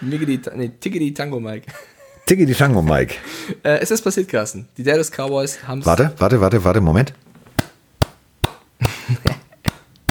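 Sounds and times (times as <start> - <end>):
speech: 0.0 - 7.3
single person clapping hands: 7.6 - 10.1.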